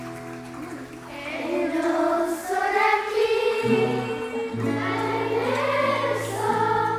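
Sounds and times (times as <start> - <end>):
Portuguese song: 1.1 - 6.9.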